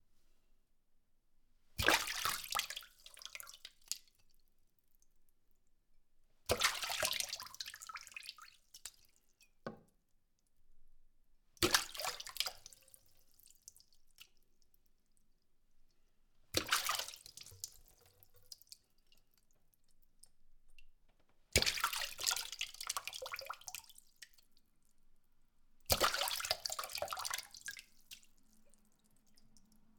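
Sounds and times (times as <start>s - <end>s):
water splashing in a kitchen sink: 1.8s - 4.0s, 6.5s - 9.6s, 11.6s - 15.2s, 16.5s - 25.1s, 25.8s - 29.9s.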